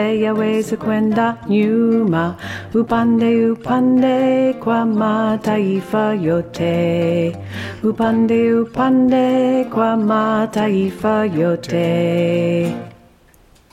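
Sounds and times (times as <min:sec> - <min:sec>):
tenor voice singing: 0:00.0 - 0:13.0
choir singing: 0:03.8 - 0:12.7.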